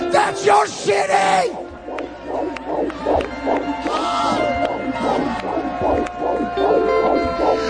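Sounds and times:
speech: 0.4s - 1.6s
fetal heartbeat on ultrasound monitor: 1.4s - 7.6s.

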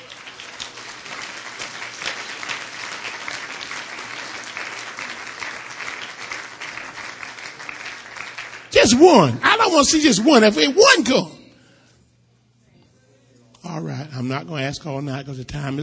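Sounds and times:
audience applause: 0.0s - 11.2s
speech: 8.9s - 11.4s, 14.3s - 15.8s.

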